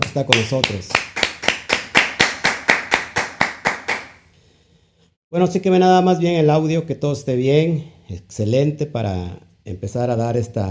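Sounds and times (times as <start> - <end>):
sharp handclaps: 0.0 - 4.3
speech: 0.2 - 1.0, 5.3 - 10.7.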